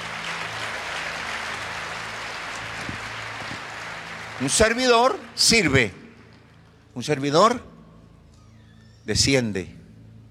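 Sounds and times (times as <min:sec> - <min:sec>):
audience clapping: 0:00.0 - 0:07.2
speech: 0:04.4 - 0:06.0, 0:07.0 - 0:07.7, 0:09.0 - 0:09.8.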